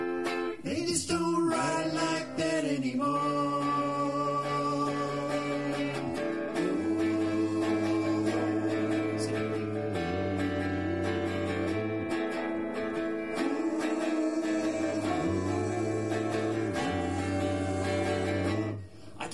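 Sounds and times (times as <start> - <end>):
woeful harmonies: 0.1 - 19.2.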